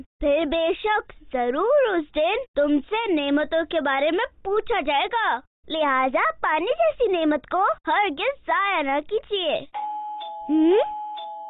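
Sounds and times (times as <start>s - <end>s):
speech: 0.2s - 9.9s, 10.5s - 11.0s
doorbell ringing: 9.8s - 11.4s.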